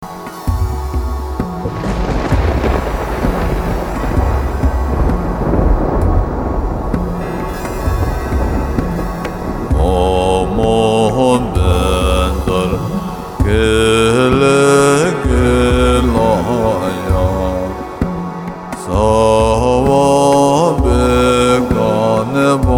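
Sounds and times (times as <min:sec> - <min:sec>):
mantra chanting: 0:00.0 - 0:22.7.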